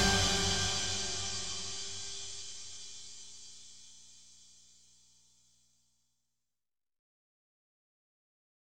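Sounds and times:
boss level music: 0:00.0 - 0:02.0.

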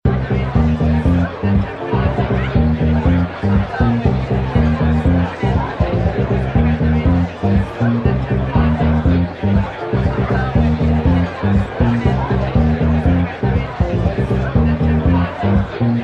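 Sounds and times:
house party ambience: 0:00.0 - 0:16.0.

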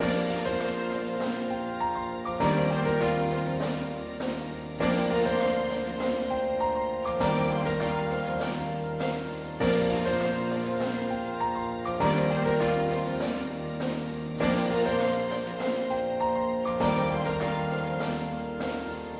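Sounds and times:
racing result fanfare: 0:00.0 - 0:19.1.

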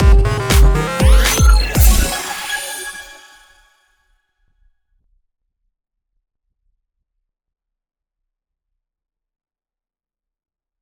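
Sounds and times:
map UI accomplished sound: 0:00.0 - 0:03.5.

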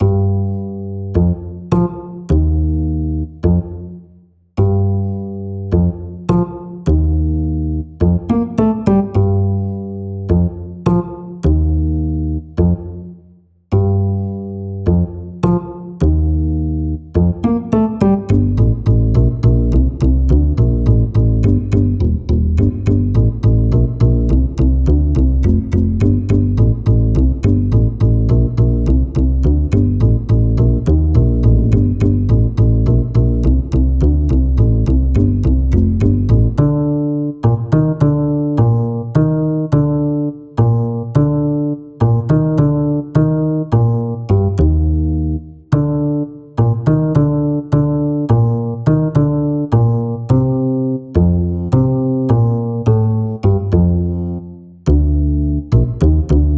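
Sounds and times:
bass: 0:00.0 - 0:56.5.

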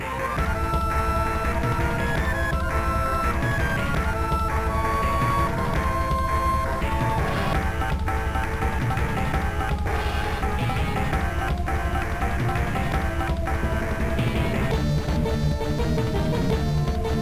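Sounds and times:
battle music: 0:00.1 - 0:17.1.

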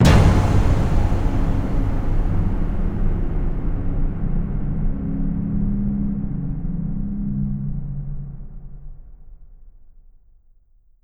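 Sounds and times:
danger music stinger: 0:00.0 - 0:08.4.

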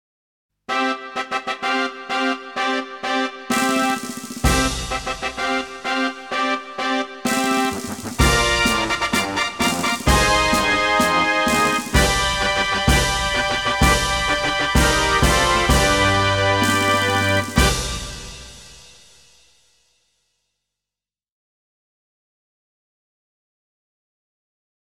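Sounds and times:
fanfare: 0:00.7 - 0:19.1.

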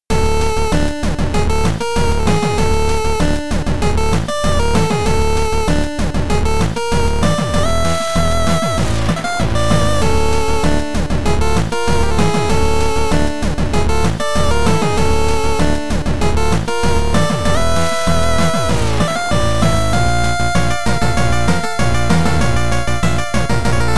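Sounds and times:
chiptune music: 0:00.1 - 0:23.9.

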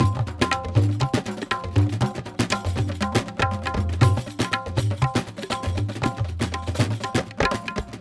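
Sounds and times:
world music action percussion: 0:00.0 - 0:07.9.

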